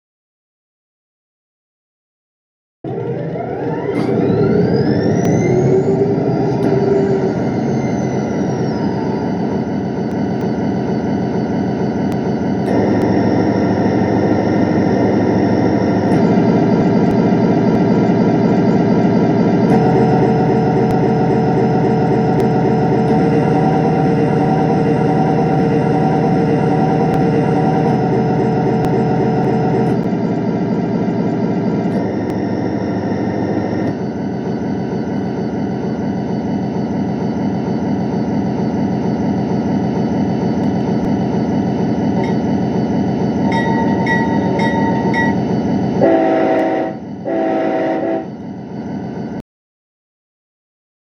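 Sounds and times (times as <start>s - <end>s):
SD40 locomotive engine with turbo: 2.8s - 49.4s.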